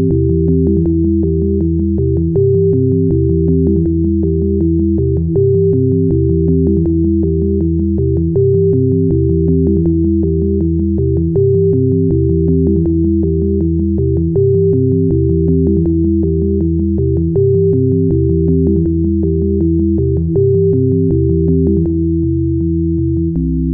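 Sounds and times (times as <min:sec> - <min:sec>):
sine waves: 0:00.0 - 0:23.7.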